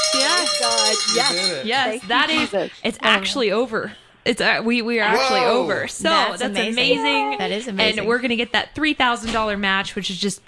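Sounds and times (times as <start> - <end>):
celebratory bell ringing: 0.0 - 2.3
speech: 0.9 - 10.4.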